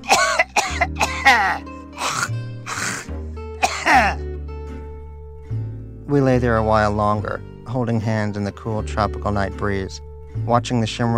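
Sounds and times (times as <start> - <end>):
old man drowning in his own phlegm: 0.0 - 4.2
speech: 1.2 - 1.7, 6.1 - 11.1.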